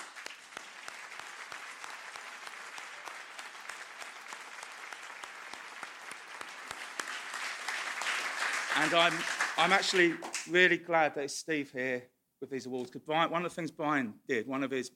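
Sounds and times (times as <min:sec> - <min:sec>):
applause: 0:00.0 - 0:10.6
speech: 0:08.8 - 0:14.9.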